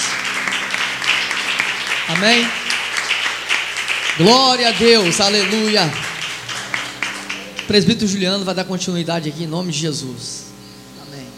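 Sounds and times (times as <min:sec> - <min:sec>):
audience clapping: 0:00.0 - 0:08.5
speech: 0:02.1 - 0:02.6, 0:04.2 - 0:06.0, 0:07.7 - 0:10.4.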